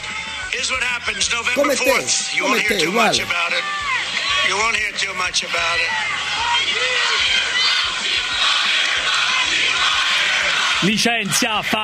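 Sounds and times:
speech: 0:00.6 - 0:07.8, 0:10.8 - 0:11.8
crowd chanting rhythmically: 0:01.6 - 0:04.0, 0:06.7 - 0:10.9
crowd roaring at a Trump rally: 0:01.6 - 0:04.6, 0:05.8 - 0:11.0.

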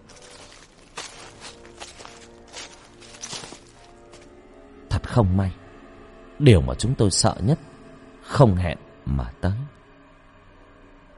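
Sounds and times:
footsteps stomping: 0:00.0 - 0:04.3
speech: 0:05.2 - 0:05.6, 0:06.4 - 0:07.7, 0:08.4 - 0:09.8.

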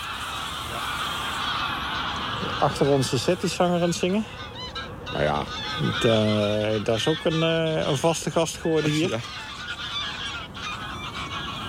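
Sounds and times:
hundreds of greylag geese honking in flight leaving a polder: 0:00.0 - 0:11.6
speech: 0:02.5 - 0:04.4, 0:05.2 - 0:09.4.

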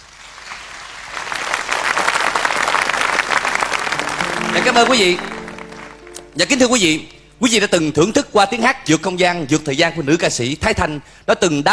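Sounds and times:
audience applause: 0:00.6 - 0:06.4
speech: 0:04.6 - 0:05.4, 0:06.4 - 0:11.7.

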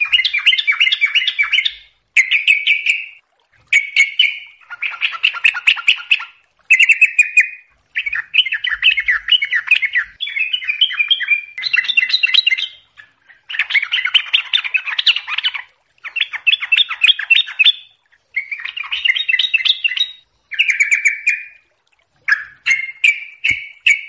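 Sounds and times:
yellow-vented bulbul song: 0:00.0 - 0:24.0.

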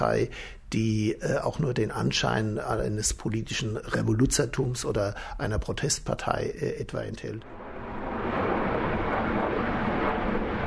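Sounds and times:
speech: 0:00.0 - 0:07.6
passenger airplane over Mainz landing approach to Frankfurt am Main: 0:07.4 - 0:10.6.

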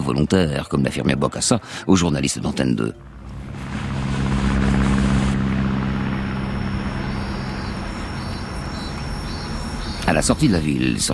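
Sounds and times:
speech: 0:00.1 - 0:03.3, 0:10.1 - 0:11.1
cargo planes landing and taking off at Bangui airfield: 0:02.6 - 0:11.1.

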